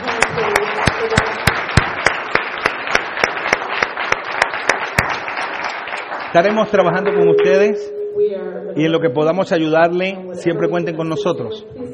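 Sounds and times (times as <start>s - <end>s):
audience applause: 0.0s - 7.3s
speech: 6.3s - 11.9s.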